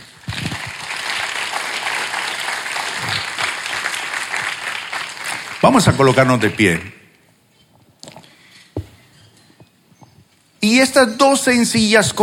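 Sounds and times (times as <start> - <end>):
crowd applauding: 0.0 - 6.9
speech: 5.6 - 7.0, 10.6 - 12.2.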